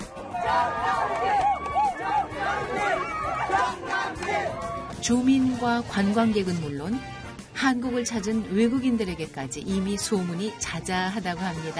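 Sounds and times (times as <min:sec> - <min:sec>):
crowd cheering at water festival: 0:00.0 - 0:05.3
speech: 0:05.0 - 0:11.7.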